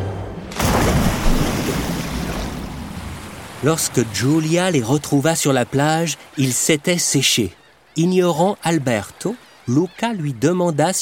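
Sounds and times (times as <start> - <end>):
rushing churning water: 0.2 - 11.0
splash of people falling off a cliff into water: 0.5 - 4.4
speech: 3.6 - 11.0.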